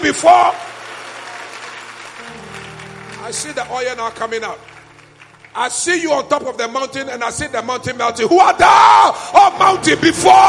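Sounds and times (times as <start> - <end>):
speech: 0.0 - 0.7, 3.3 - 4.7, 5.6 - 10.4
audience clapping: 0.0 - 6.1.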